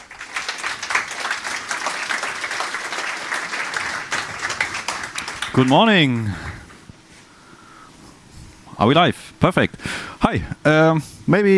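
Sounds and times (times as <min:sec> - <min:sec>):
audience applause: 0:00.0 - 0:06.7
speech: 0:05.6 - 0:06.5, 0:08.8 - 0:11.5.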